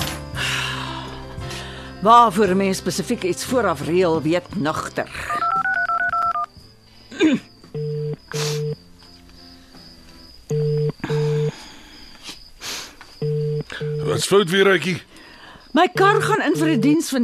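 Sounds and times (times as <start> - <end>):
speech: 2.0 - 5.5, 14.2 - 15.1, 15.7 - 17.2
phone ringback tone ringing unanswered: 5.3 - 6.5, 7.8 - 8.8, 13.2 - 14.2
touch-tone telephone dialing beeps: 5.3 - 6.5, 7.8 - 8.8, 10.5 - 11.5, 13.2 - 14.2, 16.0 - 17.0.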